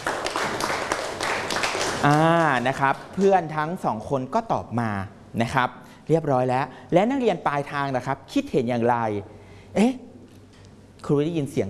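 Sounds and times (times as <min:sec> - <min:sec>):
students in a Thai classroom applauding a classmate: 0:00.0 - 0:03.4
speech: 0:02.0 - 0:10.1, 0:11.0 - 0:11.6.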